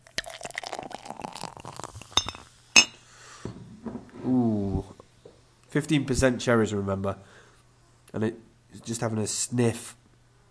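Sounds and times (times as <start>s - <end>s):
beer pouring into a glass: 0.0s - 2.9s
sharp glassy clinks: 2.2s - 3.0s
speech: 4.3s - 4.6s, 5.8s - 7.4s, 8.1s - 10.0s.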